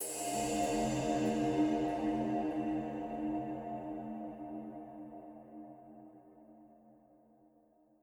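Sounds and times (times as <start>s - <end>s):
cymbal with reverb: 0.0s - 4.8s.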